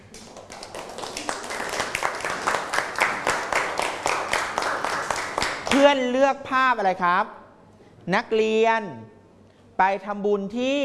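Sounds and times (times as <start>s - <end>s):
students clapping for a classmate: 0.0s - 6.0s
speech: 5.7s - 7.4s, 8.0s - 9.2s, 9.8s - 10.8s.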